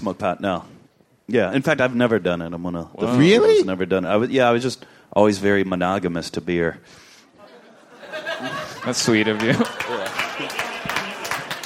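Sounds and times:
speech: 0:00.0 - 0:07.1, 0:08.4 - 0:09.8
laughter: 0:07.4 - 0:11.6
audience applause: 0:09.0 - 0:11.6.

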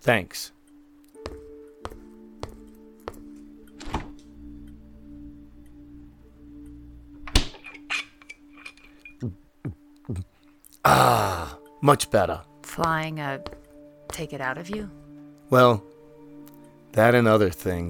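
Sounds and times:
speech: 0:00.0 - 0:00.6, 0:09.2 - 0:09.4, 0:10.1 - 0:15.9, 0:17.0 - 0:17.8
refrigerator door opening: 0:03.8 - 0:04.2.

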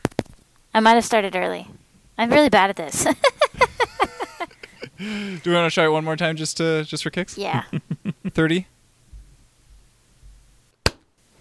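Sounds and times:
speech: 0:00.8 - 0:04.1, 0:05.0 - 0:08.7
laughter: 0:03.0 - 0:05.6, 0:07.5 - 0:08.6
soft low thumping: 0:09.1 - 0:10.6.

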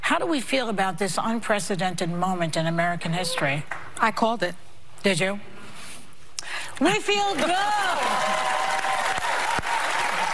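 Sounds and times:
speech: 0:00.1 - 0:05.5, 0:06.8 - 0:08.4
audience applause: 0:07.3 - 0:10.3.

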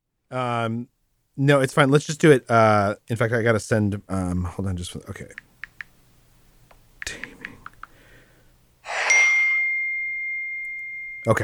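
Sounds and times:
speech: 0:00.3 - 0:05.5, 0:11.2 - 0:11.4
phone notification ding: 0:08.9 - 0:11.4.

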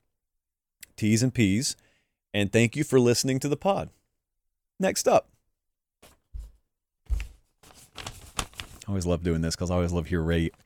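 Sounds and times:
speech: 0:01.0 - 0:04.0, 0:04.8 - 0:05.3, 0:08.9 - 0:10.6
paper being scrunched into the microphone: 0:07.6 - 0:08.8.

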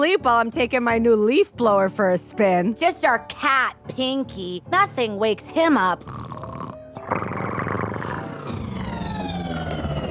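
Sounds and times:
speech: 0:00.0 - 0:06.2, 0:07.1 - 0:07.6
spaceship sound effect: 0:08.2 - 0:10.0.

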